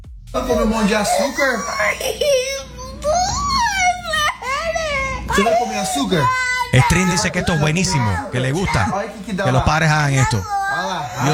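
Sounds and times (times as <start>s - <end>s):
speech: 0.3s - 2.5s, 5.3s - 11.3s
laughter: 0.4s - 10.4s, 11.0s - 11.3s
children screaming and crying: 0.4s - 11.3s.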